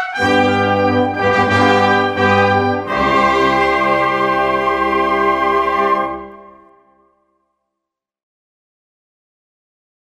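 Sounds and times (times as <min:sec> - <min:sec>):
brass band playing: 0:00.0 - 0:07.0.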